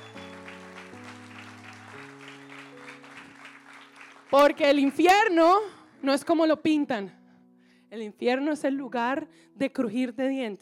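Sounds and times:
audience applause: 0:00.0 - 0:05.1
speech: 0:04.3 - 0:07.2, 0:07.9 - 0:10.6.

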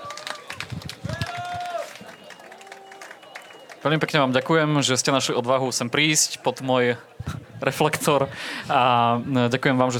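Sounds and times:
audience applause: 0:00.0 - 0:04.9
voices cheering: 0:00.0 - 0:05.0
speech: 0:03.8 - 0:09.9.

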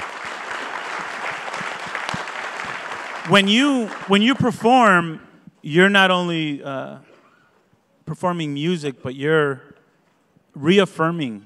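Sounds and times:
audience applause for a drum group: 0:00.0 - 0:04.9
speech: 0:03.3 - 0:07.1, 0:08.1 - 0:09.7, 0:10.6 - 0:11.4.

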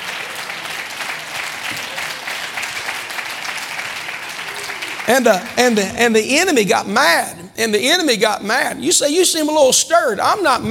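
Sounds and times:
audience clapping hands: 0:00.0 - 0:06.6
speech: 0:05.1 - 0:10.6.

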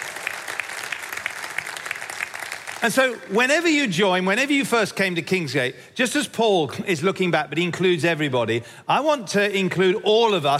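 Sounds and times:
audience applause: 0:00.0 - 0:03.2
speech: 0:02.8 - 0:10.5.

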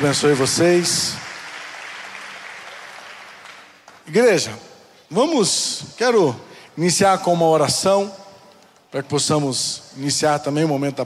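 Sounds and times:
speech: 0:00.0 - 0:01.2, 0:04.1 - 0:08.2, 0:08.9 - 0:11.0
church congregation clapping for the prophets: 0:00.0 - 0:04.6.

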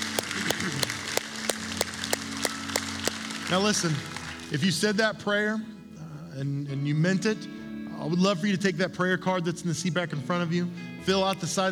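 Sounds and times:
audience applause: 0:00.0 - 0:04.5
speech: 0:03.5 - 0:11.7.

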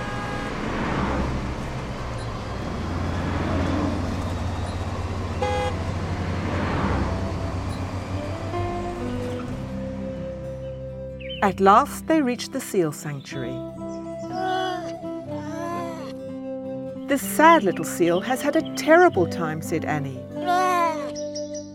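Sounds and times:
car horns honking: 0:00.0 - 0:09.8
busy road traffic: 0:00.0 - 0:21.7
speech: 0:11.4 - 0:13.8, 0:17.1 - 0:20.3.

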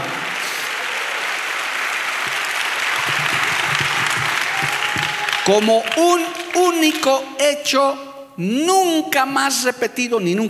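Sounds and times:
audience applauding: 0:00.0 - 0:07.4
speech: 0:05.5 - 0:10.4.

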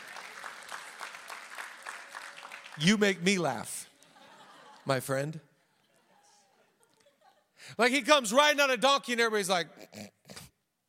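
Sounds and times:
small audience applause: 0:00.0 - 0:04.8
speech: 0:02.8 - 0:03.8, 0:04.8 - 0:05.5, 0:07.7 - 0:10.2
laughter: 0:03.9 - 0:07.6.

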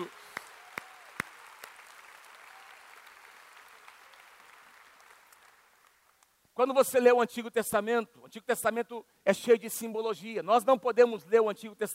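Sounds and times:
audience applause: 0:00.0 - 0:06.2
speech: 0:06.6 - 0:11.9.

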